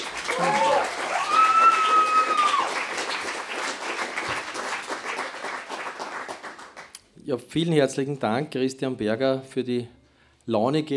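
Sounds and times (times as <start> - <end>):
audience applause: 0.0 - 6.9
speech: 7.3 - 10.9.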